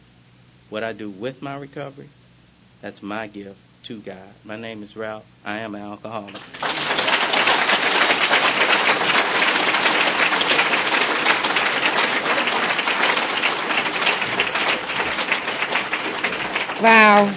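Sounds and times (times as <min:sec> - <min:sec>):
speech: 0:00.7 - 0:02.2, 0:02.8 - 0:06.9, 0:16.8 - 0:17.3
audience applause: 0:06.3 - 0:17.3.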